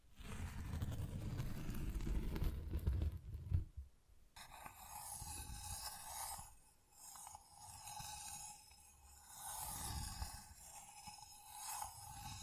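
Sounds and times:
tapping and scratching on textured surfaces: 0.0 - 12.4
steady thin tone: 4.4 - 12.4.

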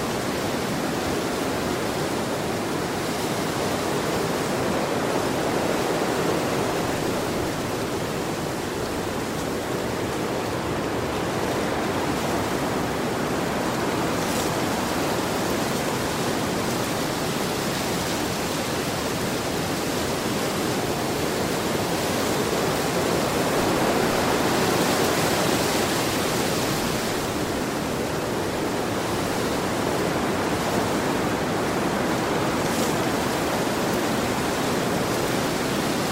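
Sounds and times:
gentle breeze rushing through leaves: 0.0 - 36.1.

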